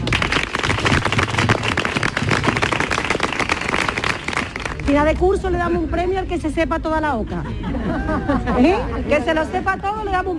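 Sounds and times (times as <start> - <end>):
audience applause: 0.0 - 4.8
speech: 4.9 - 10.3
laughter: 7.2 - 9.7.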